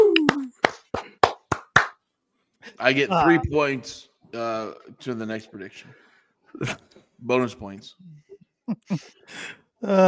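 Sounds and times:
sparse hand claps from a few hands: 0.0 - 2.0
speech: 2.8 - 10.0.

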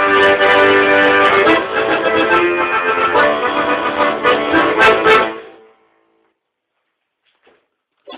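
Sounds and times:
accordion: 0.0 - 5.8.

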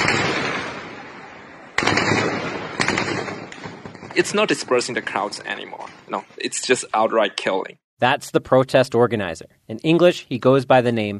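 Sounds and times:
automatic rifle gunfire: 0.0 - 4.3
speech: 4.2 - 11.1.

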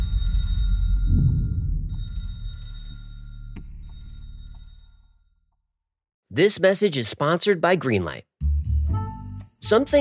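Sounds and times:
telephone ringing: 0.0 - 1.2, 1.8 - 5.2
low rumbling drone: 0.6 - 2.4
speech: 6.4 - 8.4, 9.6 - 10.0.

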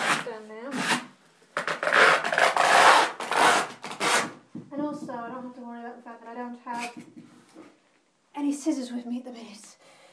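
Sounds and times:
masking tape being ripped off: 0.0 - 4.4, 6.7 - 7.0
speech: 8.5 - 9.9.

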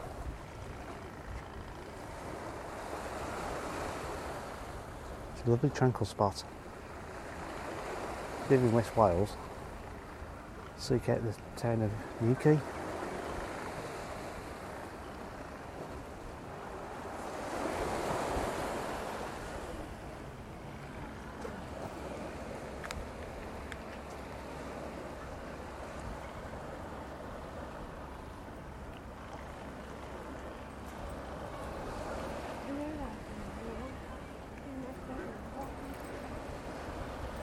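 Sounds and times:
wind at New Quay harbour in West Wales: 0.0 - 37.4
speech: 5.4 - 6.6, 8.5 - 9.5, 10.8 - 12.8.

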